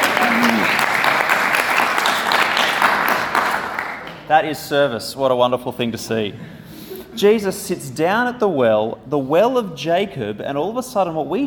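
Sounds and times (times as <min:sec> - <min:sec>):
applause: 0:00.0 - 0:04.3
speech: 0:04.3 - 0:06.6, 0:07.2 - 0:11.4.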